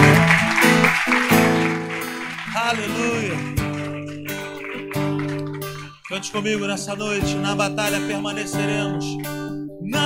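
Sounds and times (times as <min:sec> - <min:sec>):
audience applause: 0:00.0 - 0:07.2
speech: 0:06.1 - 0:10.0.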